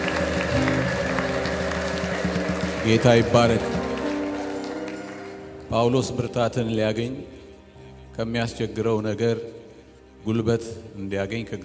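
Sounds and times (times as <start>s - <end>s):
church congregation clapping: 0.0s - 6.6s
speech: 2.8s - 3.8s, 5.7s - 7.4s, 8.2s - 9.6s, 10.2s - 11.6s.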